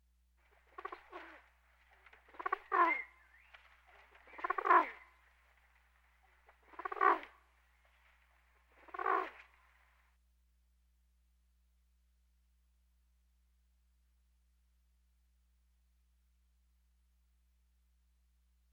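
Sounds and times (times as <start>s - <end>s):
pigeon cooing: 0.6s - 5.2s, 6.6s - 7.3s, 8.7s - 9.6s.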